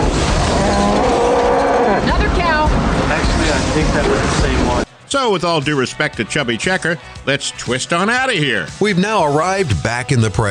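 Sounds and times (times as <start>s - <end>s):
loud constant roaring rush of noise: 0.0s - 4.9s
cow mooing in a scene from the 1996 film Twister: 0.4s - 2.2s
speech: 5.1s - 10.4s.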